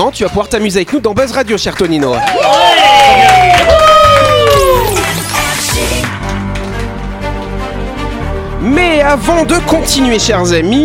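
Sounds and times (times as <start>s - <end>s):
speech: 0.0s - 4.0s, 8.6s - 10.8s
audience applause: 1.8s - 6.9s.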